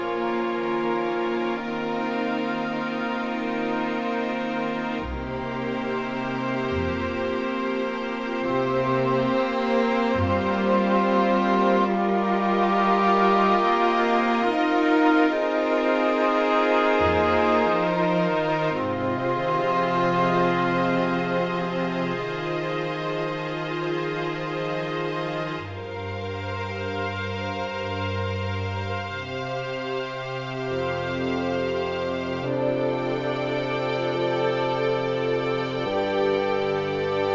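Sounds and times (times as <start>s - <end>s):
orchestra playing: 0.0s - 37.3s.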